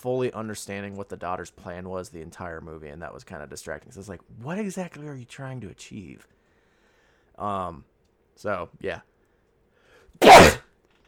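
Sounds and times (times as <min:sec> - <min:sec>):
speech: 0:00.0 - 0:06.4, 0:07.4 - 0:09.1
sneeze: 0:10.2 - 0:10.6.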